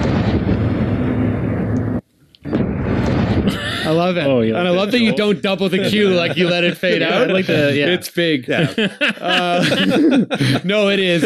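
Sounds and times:
cannon fire: 0.0s - 5.0s
laughter: 3.5s - 11.2s
speech: 3.9s - 11.2s.

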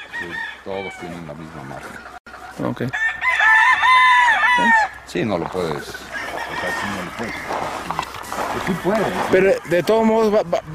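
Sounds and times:
rooster crowing: 0.0s - 1.2s, 2.9s - 5.0s, 6.1s - 7.9s
speech: 0.2s - 3.1s, 4.6s - 10.7s.

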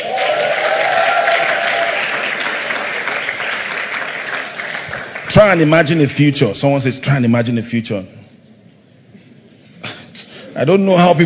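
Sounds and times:
audience clapping: 0.0s - 6.0s
speech: 5.3s - 8.2s, 10.6s - 11.2s.

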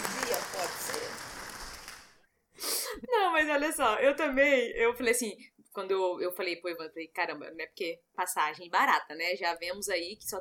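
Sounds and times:
applause: 0.0s - 2.2s
speech: 3.4s - 10.3s.

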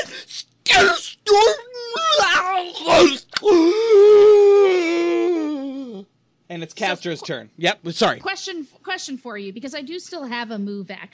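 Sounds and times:
speech: 0.2s - 1.5s, 6.6s - 11.1s
voice imitating a terrible infernal howl: 1.3s - 6.1s.

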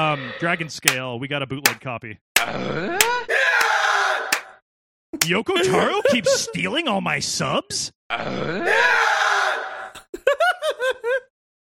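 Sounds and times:
speech: 0.1s - 3.3s, 5.2s - 9.3s
voice imitating Tim Allen's grunting scream: 2.4s - 4.4s, 8.1s - 10.0s
laughter: 5.5s - 6.8s, 9.6s - 11.3s.

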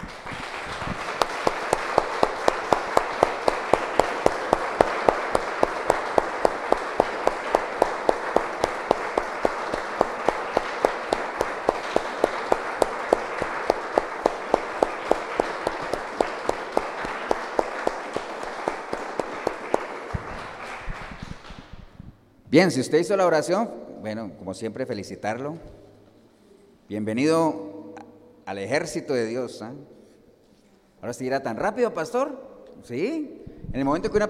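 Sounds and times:
audience applauding: 0.0s - 22.0s
speech: 22.6s - 25.8s, 26.9s - 27.6s, 28.5s - 30.0s, 31.0s - 34.2s.

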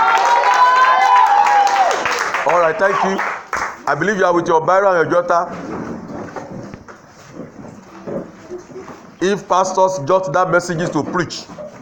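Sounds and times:
audience clapping: 0.0s - 4.3s
speech: 2.6s - 5.8s, 9.2s - 11.6s.

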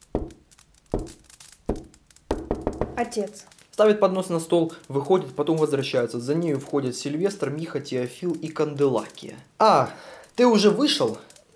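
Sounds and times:
knocking on wood: 0.0s - 3.1s
speech: 3.0s - 11.3s.

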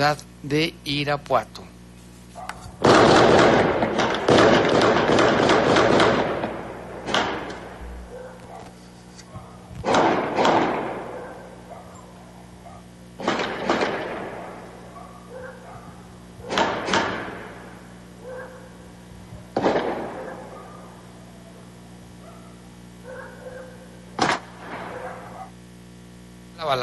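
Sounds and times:
speech: 0.0s - 1.6s
recorded gunfire in Santa Sofía, Irapuato: 2.8s - 8.0s, 9.8s - 11.5s, 13.2s - 14.9s, 16.4s - 17.8s, 19.5s - 20.6s, 24.2s - 25.4s.

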